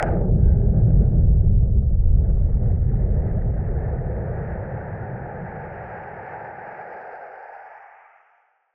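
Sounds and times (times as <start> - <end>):
filtered noise bomb boom: 0.0 - 4.9.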